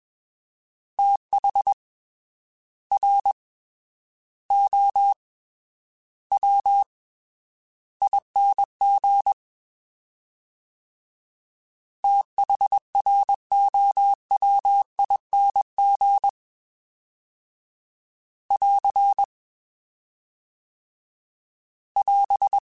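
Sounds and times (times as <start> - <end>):
fast CW Morse code groups: 3.0 - 3.4, 4.5 - 5.2, 6.4 - 6.9, 8.0 - 9.4, 12.0 - 16.4, 18.5 - 19.3, 22.0 - 22.6.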